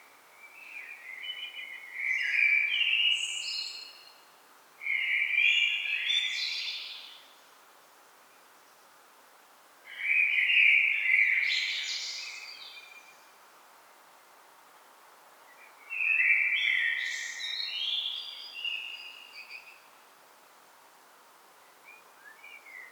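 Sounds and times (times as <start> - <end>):
Common blackbird song: 0.3 - 4.2, 4.8 - 7.4, 9.9 - 13.4, 15.5 - 20.0, 21.6 - 22.9.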